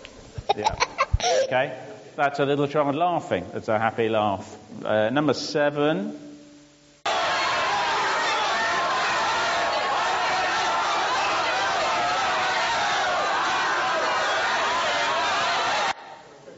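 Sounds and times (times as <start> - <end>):
speech: 0.6 - 6.3
angry crowd: 7.1 - 16.3.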